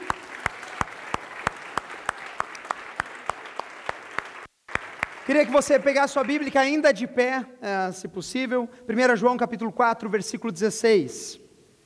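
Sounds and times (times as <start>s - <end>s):
audience applauding: 0.0s - 6.8s
speech: 5.3s - 11.4s.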